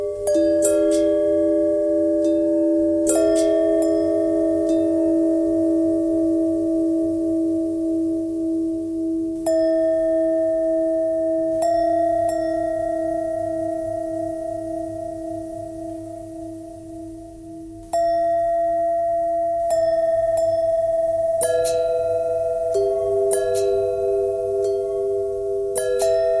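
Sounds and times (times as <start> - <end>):
long bell bend threads: 0.0 - 26.3.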